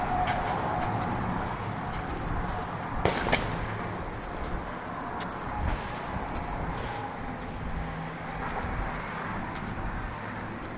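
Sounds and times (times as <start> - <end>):
steady hum of passing traffic: 0.0 - 10.7.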